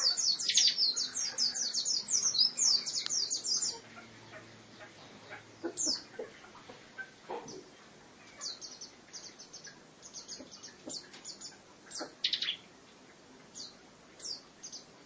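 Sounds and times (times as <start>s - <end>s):
lovebird chattering in high buzzy pulsed bursts: 0.0s - 6.3s, 8.3s - 12.6s.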